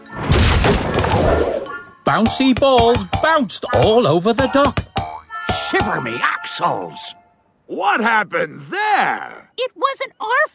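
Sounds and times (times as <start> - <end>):
wooden crate dropped and bursting open: 0.2 - 1.5
speech: 2.1 - 4.8, 5.6 - 10.5.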